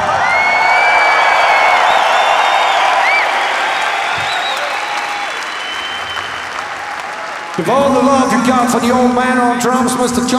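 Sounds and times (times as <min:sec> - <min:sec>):
audience whistles and whoops: 0:00.0 - 0:07.6
concert audience clapping for the bass guitarist: 0:00.0 - 0:08.9
speech: 0:07.6 - 0:10.3.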